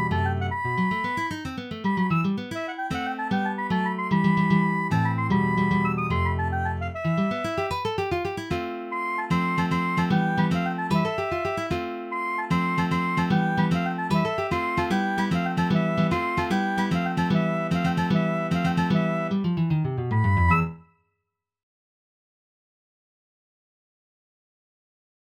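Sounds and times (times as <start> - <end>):
saltarello played on saxophone: 0.0 - 1.2, 2.0 - 19.4, 20.0 - 20.8.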